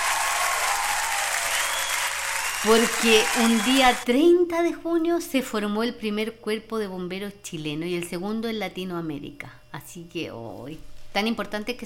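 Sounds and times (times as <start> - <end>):
applause for firefighters: 0.0 - 4.0
speech: 2.6 - 11.8.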